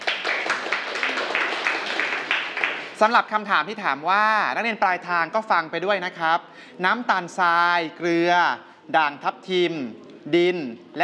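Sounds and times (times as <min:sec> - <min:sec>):
students clapping for a classmate: 0:00.0 - 0:03.1
speech: 0:03.0 - 0:11.0.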